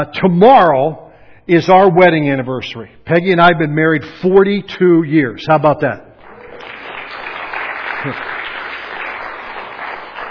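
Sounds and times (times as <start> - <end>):
speech: 0.0 - 6.7, 8.0 - 8.3
audience round of applause: 6.2 - 10.2.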